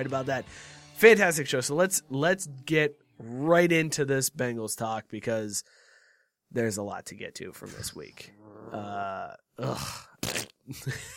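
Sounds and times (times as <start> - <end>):
speech: 0.0 - 5.8, 6.5 - 11.1
person making fart noises with the mouth: 9.6 - 10.8.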